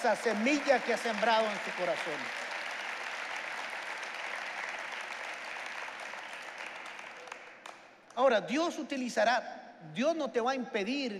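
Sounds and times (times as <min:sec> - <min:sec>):
speech: 0:00.0 - 0:02.4, 0:08.2 - 0:11.1
audience applause: 0:00.0 - 0:07.8.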